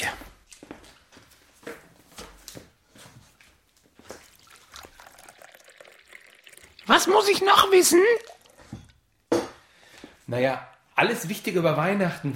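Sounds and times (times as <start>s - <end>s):
water bubbling at a boil: 4.0s - 9.0s
speech: 6.9s - 8.3s, 10.3s - 12.3s.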